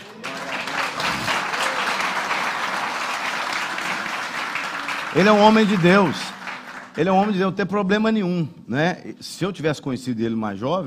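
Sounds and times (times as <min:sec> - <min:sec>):
audience applause: 0:00.0 - 0:07.5
speech: 0:05.2 - 0:06.4, 0:07.0 - 0:10.8.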